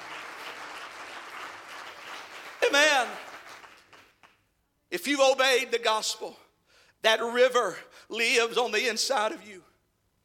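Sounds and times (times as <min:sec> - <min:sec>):
audience clapping hands: 0:00.0 - 0:04.5
speech: 0:02.7 - 0:03.2, 0:04.9 - 0:06.4, 0:07.0 - 0:09.7.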